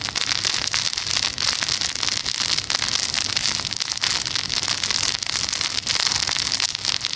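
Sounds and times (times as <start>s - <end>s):
bonfire crackling: 0.0s - 7.1s.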